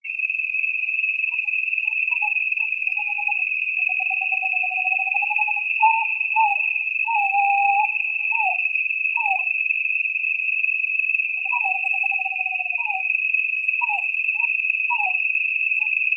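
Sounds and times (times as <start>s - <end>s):
small nighttime ambience in Zion park: 0.0s - 16.1s.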